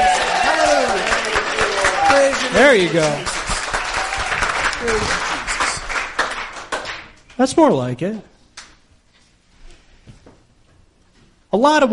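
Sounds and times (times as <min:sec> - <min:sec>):
audience cheering and whoops: 0:00.0 - 0:06.3
audience applause: 0:00.0 - 0:07.2
speech: 0:02.6 - 0:03.3, 0:04.8 - 0:05.3, 0:07.4 - 0:08.3, 0:11.6 - 0:11.9.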